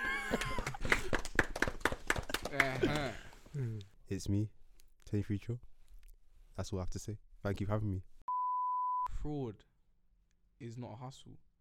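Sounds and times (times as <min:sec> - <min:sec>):
clapping: 0:00.1 - 0:03.3
speech: 0:00.3 - 0:00.5, 0:02.6 - 0:05.7, 0:06.6 - 0:08.1, 0:09.2 - 0:09.7, 0:10.6 - 0:11.4.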